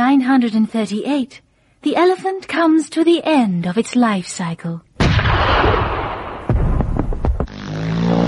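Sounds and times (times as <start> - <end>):
speech: 0.2 - 5.8
loud gunshot blast: 5.0 - 7.5
sharp cracks: 5.0 - 8.1.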